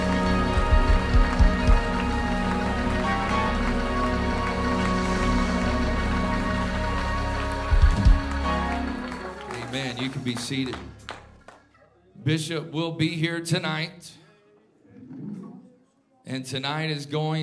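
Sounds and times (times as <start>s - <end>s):
sustained musical tones: 0.0s - 10.3s
audience clapping hands in praise: 0.0s - 11.8s
speech: 9.8s - 11.0s, 12.2s - 14.2s, 16.3s - 17.4s.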